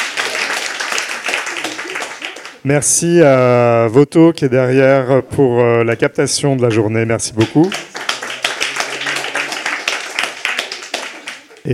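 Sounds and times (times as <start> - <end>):
audience applause: 0.0 - 2.6, 7.4 - 11.7
speech: 2.6 - 7.8.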